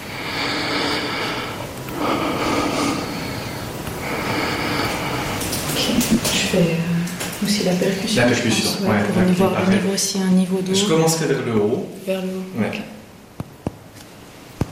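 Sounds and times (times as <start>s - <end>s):
patient breathing deeply through an open mouth during lung auscultation: 0.0s - 8.8s
speech: 6.6s - 6.8s, 7.5s - 13.0s.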